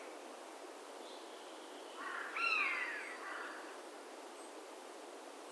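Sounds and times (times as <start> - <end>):
carrion crow Corvus corone giving harsh rasping caws: 2.0 - 3.7.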